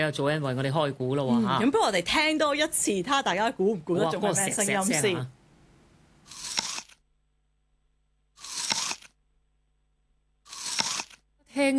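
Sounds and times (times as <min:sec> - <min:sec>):
speech: 0:00.0 - 0:05.4
biting into a crisp apple: 0:06.3 - 0:07.0, 0:08.4 - 0:09.2, 0:10.5 - 0:11.2.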